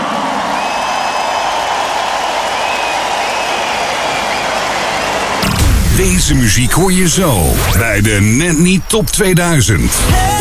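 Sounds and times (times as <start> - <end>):
audience applause: 0.0 - 5.5
speech: 6.0 - 10.3.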